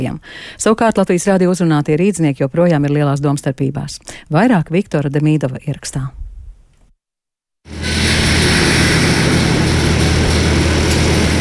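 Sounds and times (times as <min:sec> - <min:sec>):
speech: 0:00.0 - 0:06.2
workers installing a tall metal fence on Hermaņa iela by Victory Park: 0:07.7 - 0:11.4.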